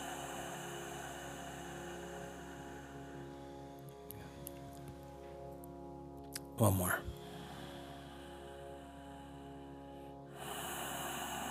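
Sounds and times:
faint breath during a guided self-enquiry meditation: 0:00.0 - 0:05.5, 0:07.1 - 0:11.4
speech: 0:06.6 - 0:07.2.

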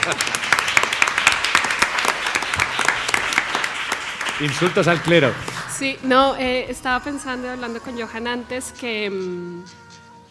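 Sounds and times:
speech: 0:00.0 - 0:00.4, 0:04.4 - 0:09.8
audience applause: 0:00.0 - 0:06.1.

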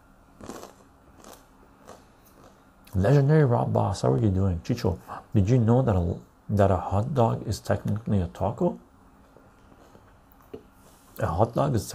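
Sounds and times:
person biting into a cracker topped with blackberry jam: 0:00.4 - 0:03.0
speech: 0:03.0 - 0:08.9, 0:11.2 - 0:11.9.

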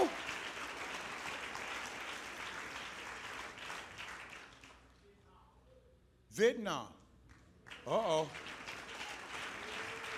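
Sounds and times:
audience clapping: 0:00.0 - 0:05.0, 0:07.3 - 0:10.1
speech: 0:06.4 - 0:07.0, 0:07.8 - 0:08.5.

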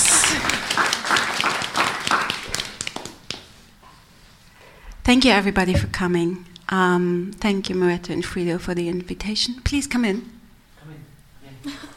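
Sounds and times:
audience applause: 0:00.0 - 0:03.3
speech: 0:05.1 - 0:10.4.

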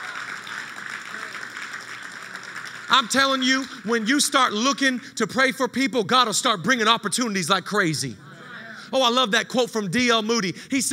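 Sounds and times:
audience clapping: 0:00.0 - 0:04.9
speech: 0:02.9 - 0:08.2, 0:08.9 - 0:10.9.

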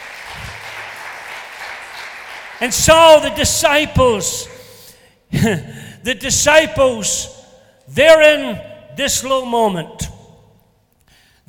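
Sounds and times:
audience applause: 0:00.0 - 0:02.7
speech: 0:02.6 - 0:04.5, 0:05.4 - 0:10.1.

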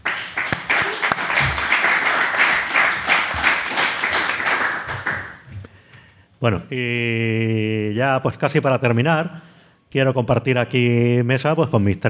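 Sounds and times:
audience applause: 0:00.0 - 0:05.4
speech: 0:06.4 - 0:12.0.

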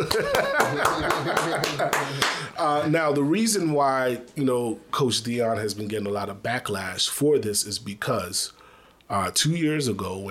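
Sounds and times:
laughter: 0:00.0 - 0:02.5
people clapping: 0:00.0 - 0:02.5
speech: 0:01.6 - 0:10.2.

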